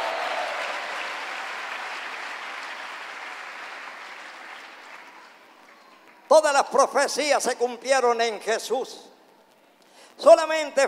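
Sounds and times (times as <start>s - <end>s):
audience applause: 0.0s - 6.2s
speech: 6.3s - 9.1s, 10.2s - 10.8s.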